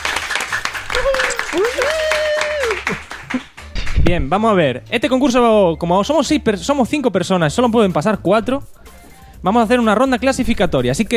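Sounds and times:
applause: 0:00.0 - 0:04.0
person whooping: 0:00.8 - 0:03.4
speech: 0:01.5 - 0:02.0, 0:04.1 - 0:08.8, 0:09.4 - 0:11.1.

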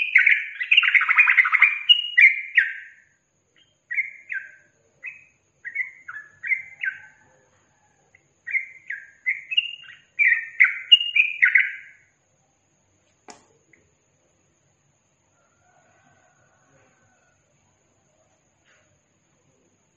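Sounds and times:
yellow-vented bulbul singing: 0:00.0 - 0:07.4, 0:08.1 - 0:12.2.

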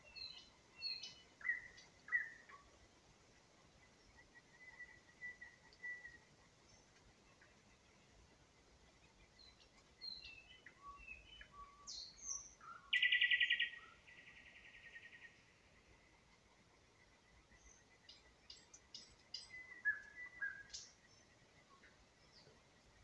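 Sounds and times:
nightingale spring song in Ukraine: 0:00.0 - 0:02.7, 0:04.2 - 0:06.9, 0:09.3 - 0:15.8, 0:17.5 - 0:22.6.

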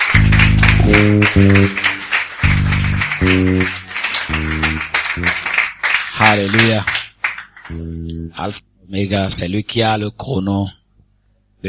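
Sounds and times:
bold sustained keyboard chords: 0:00.0 - 0:05.8, 0:07.7 - 0:08.6
church congregation cheering and clapping: 0:00.0 - 0:07.8
speech: 0:00.9 - 0:01.9, 0:03.2 - 0:03.8, 0:06.3 - 0:07.0, 0:07.7 - 0:10.8.

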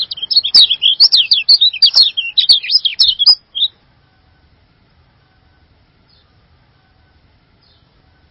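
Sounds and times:
bird song: 0:00.0 - 0:03.8, 0:06.0 - 0:06.4, 0:07.6 - 0:08.2.

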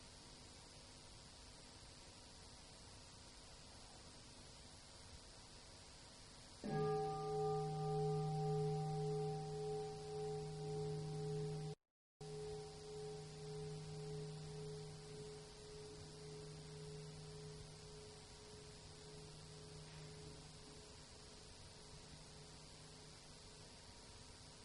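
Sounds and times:
meditation bell being struck and ringing: 0:06.6 - 0:24.6.

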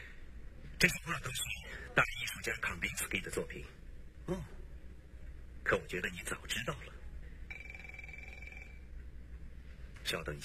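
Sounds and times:
low hum: 0:00.0 - 0:10.4
speech: 0:00.8 - 0:04.6, 0:05.6 - 0:07.0, 0:10.1 - 0:10.4
telephone ringing with an electronic trill: 0:07.5 - 0:08.9.

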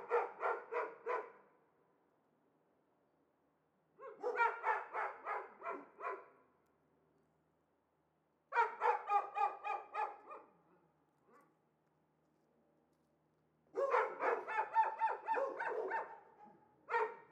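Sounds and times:
dogs shut in cages barking excitedly: 0:00.0 - 0:01.3, 0:04.0 - 0:06.3, 0:08.5 - 0:10.5, 0:13.8 - 0:16.2, 0:16.9 - 0:17.2.

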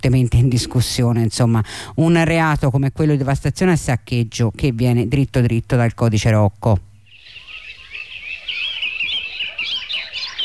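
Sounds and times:
speech: 0:00.0 - 0:06.9
birds chirping and twittering in a high-pitched chorus: 0:07.0 - 0:10.4.

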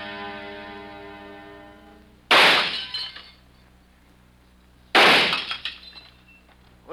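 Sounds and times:
glass bottles shattered by gunshots: 0:02.5 - 0:03.4, 0:05.0 - 0:06.2.

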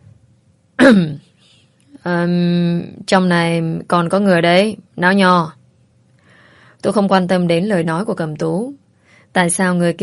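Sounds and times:
throat clearing: 0:00.8 - 0:01.2
speech: 0:00.9 - 0:01.2, 0:02.0 - 0:05.6, 0:06.8 - 0:10.0.

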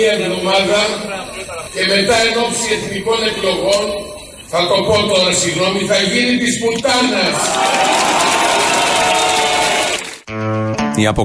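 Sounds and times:
speech: 0:00.0 - 0:08.1, 0:11.0 - 0:11.2
crowd applauding a mayor's speech: 0:07.2 - 0:10.3.

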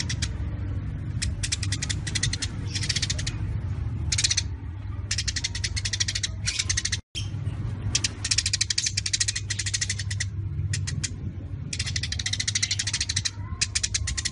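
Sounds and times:
Eurasian tree sparrow chattering: 0:00.0 - 0:00.4, 0:01.1 - 0:03.4, 0:04.1 - 0:07.3, 0:07.9 - 0:14.3.

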